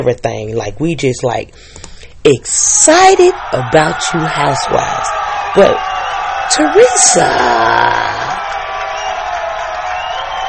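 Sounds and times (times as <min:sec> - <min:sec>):
speech: 0:00.0 - 0:05.9, 0:06.5 - 0:08.3
crowd cheering: 0:02.8 - 0:10.4
loud whoops and yells: 0:03.2 - 0:10.4.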